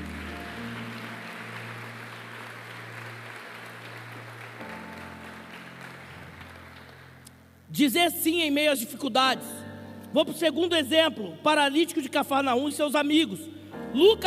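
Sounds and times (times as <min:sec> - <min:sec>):
audience applauding: 0:00.0 - 0:07.5
speech: 0:07.7 - 0:14.2.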